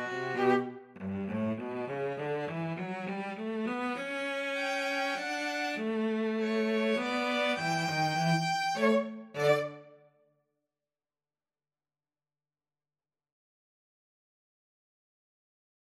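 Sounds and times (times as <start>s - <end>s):
two violins playing: 0.0s - 9.9s.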